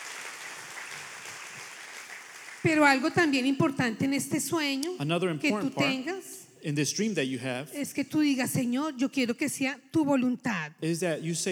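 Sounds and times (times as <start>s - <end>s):
audience applause: 0.0s - 3.3s
speech: 2.6s - 11.5s.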